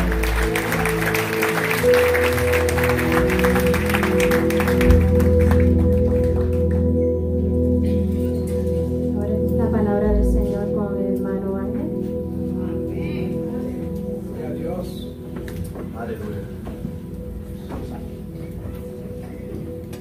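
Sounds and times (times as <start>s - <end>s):
audience clapping: 0.0s - 7.1s
sustained organ-like keyboard chords: 0.0s - 20.0s.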